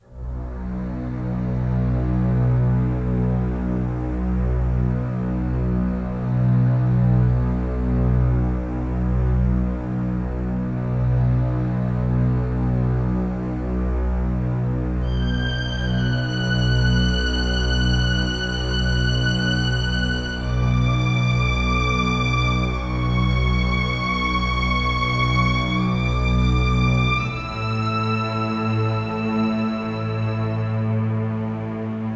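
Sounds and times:
ambient strings stem: 0.0 - 32.1.

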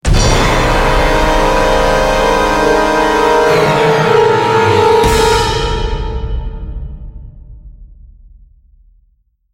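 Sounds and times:
large musical sting: 0.1 - 6.9.

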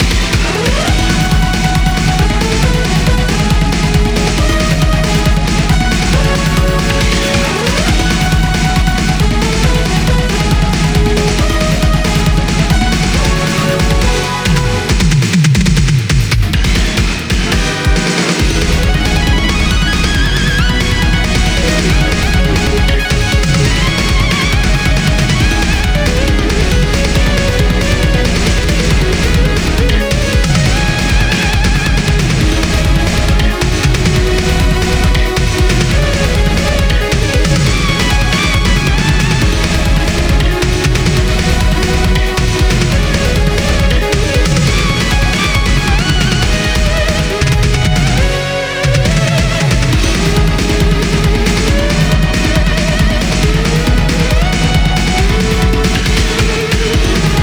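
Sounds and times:
battle music loop: 0.0 - 57.4.

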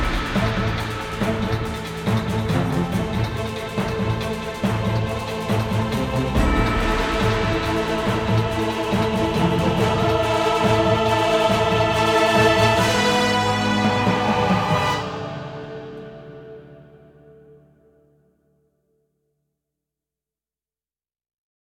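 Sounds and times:
battle music loop: 0.0 - 15.4.

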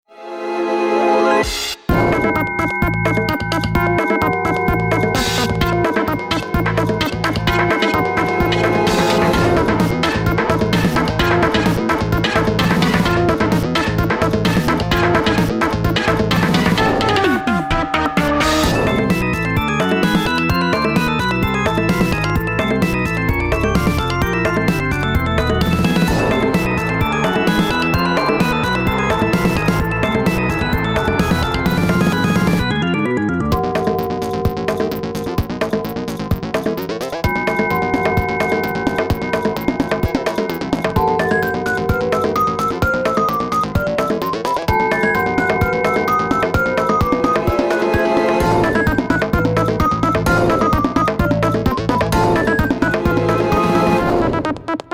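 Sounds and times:
battle music: 0.9 - 54.9.

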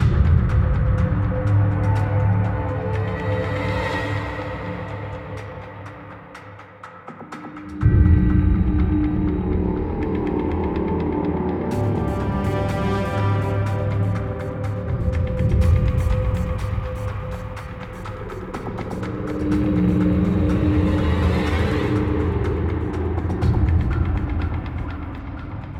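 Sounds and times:
exploration background music: 0.0 - 25.7.

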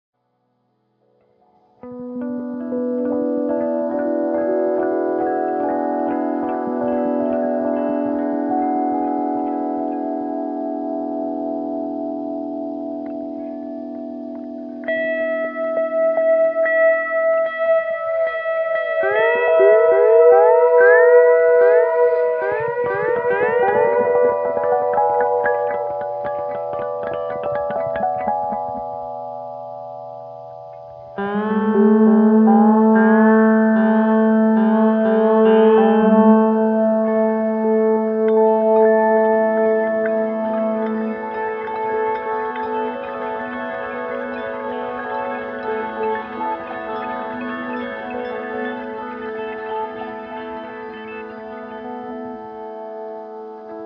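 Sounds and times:
steel guitar in G: 1.4 - 53.8.

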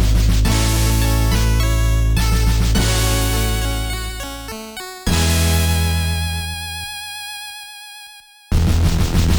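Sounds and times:
music end loop: 0.0 - 7.5.

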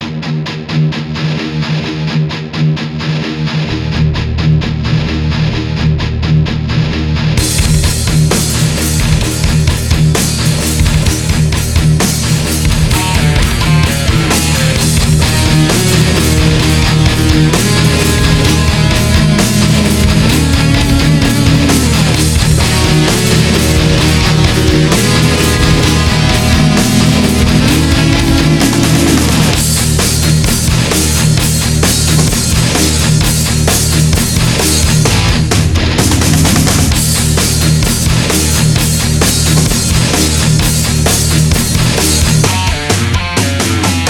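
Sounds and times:
heavy riff: 0.0 - 44.0.

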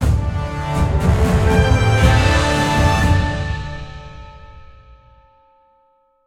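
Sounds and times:
battle won victory jingle: 0.7 - 5.2.

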